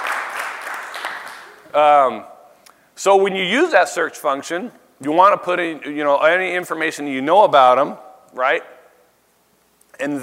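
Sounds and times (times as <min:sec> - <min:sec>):
audience applause greeting a speaker's wife: 0:00.0 - 0:01.6
speech: 0:01.8 - 0:02.3, 0:03.0 - 0:08.7, 0:10.0 - 0:10.2.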